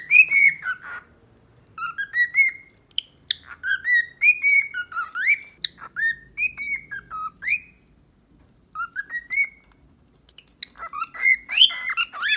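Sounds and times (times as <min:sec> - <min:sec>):
cockatiel whistling a tune: 0:00.0 - 0:01.1, 0:01.8 - 0:07.8, 0:08.7 - 0:09.7, 0:10.6 - 0:12.3
soft steady noise: 0:00.0 - 0:12.3.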